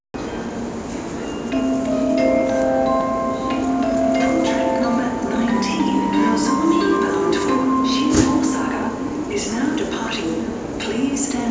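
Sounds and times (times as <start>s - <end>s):
Nozomi train chime: 0.2s - 11.4s
train departure melody: 1.4s - 10.8s.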